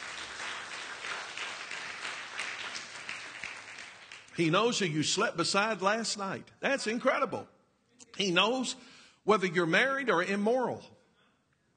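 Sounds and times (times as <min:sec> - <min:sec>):
audience hand clapping: 0:00.0 - 0:04.7
speech: 0:04.4 - 0:07.6, 0:08.2 - 0:11.0.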